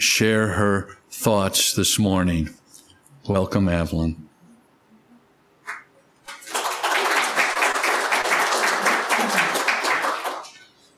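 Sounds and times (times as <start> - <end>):
speech: 0.0 - 2.6, 3.2 - 4.3
audience applause: 6.3 - 10.6.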